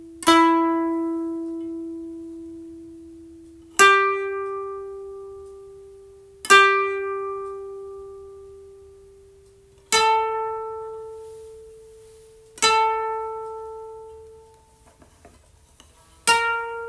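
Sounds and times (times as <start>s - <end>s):
koto tuned to C: 0.0s - 16.8s.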